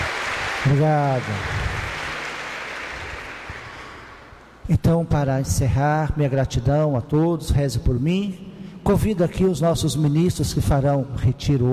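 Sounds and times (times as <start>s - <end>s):
congregation applauding a priest at a Catholic religious gathering: 0.0s - 4.6s
speech: 0.6s - 1.6s, 4.7s - 11.7s.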